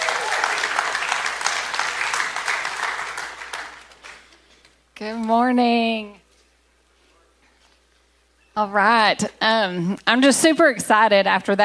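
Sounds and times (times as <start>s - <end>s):
audience applause welcoming a speaker onto the stage: 0.0s - 4.4s
speech: 5.0s - 6.2s, 8.6s - 11.6s.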